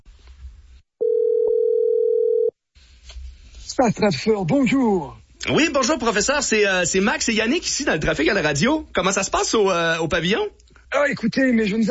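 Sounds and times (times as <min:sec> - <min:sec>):
telephone ringing tone: 0:01.0 - 0:02.5
speech: 0:03.8 - 0:11.8.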